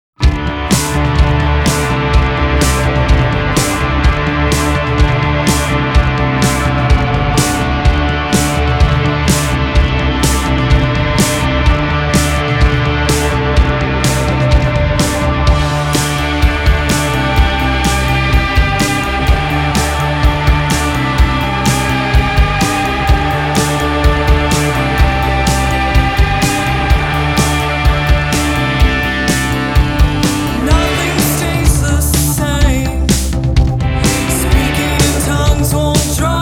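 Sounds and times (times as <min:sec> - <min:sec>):
horror music: 0:00.2 - 0:36.3.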